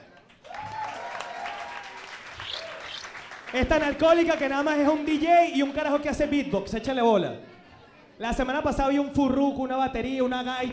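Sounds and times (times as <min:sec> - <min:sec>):
applause: 0:00.0 - 0:06.2
speech: 0:03.5 - 0:07.5, 0:08.2 - 0:10.7.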